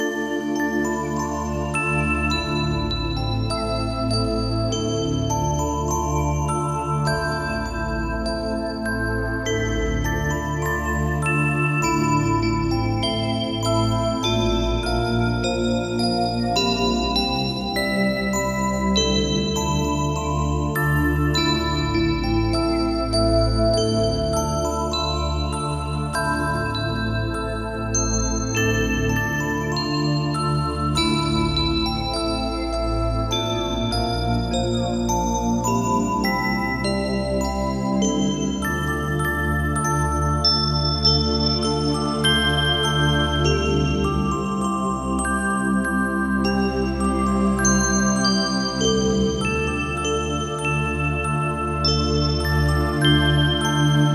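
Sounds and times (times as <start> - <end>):
fantasy music: 0.0 - 54.1.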